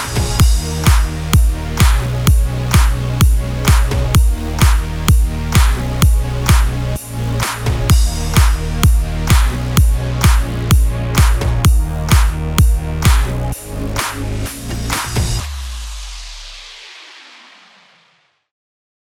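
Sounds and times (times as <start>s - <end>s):
EDM bed in D sharp minor: 0.0s - 18.3s.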